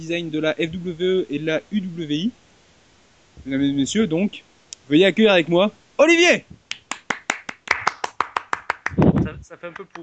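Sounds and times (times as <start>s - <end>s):
speech: 0.0s - 2.4s, 3.4s - 6.6s, 9.6s - 10.0s
audience applause: 7.0s - 9.0s.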